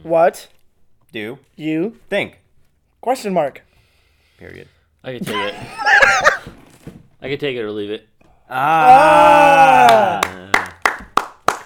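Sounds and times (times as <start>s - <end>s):
speech: 0.0s - 2.4s, 3.0s - 3.7s, 4.4s - 6.2s, 7.2s - 10.5s
hand clapping: 9.8s - 11.6s.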